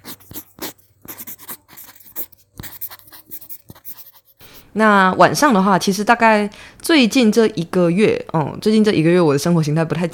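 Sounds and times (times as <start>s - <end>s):
pencil writing on paper: 0.0s - 4.6s
speech: 4.8s - 10.1s.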